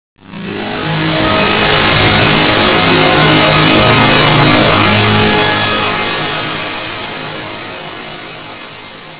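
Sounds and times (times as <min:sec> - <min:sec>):
drone: 0:00.2 - 0:09.1.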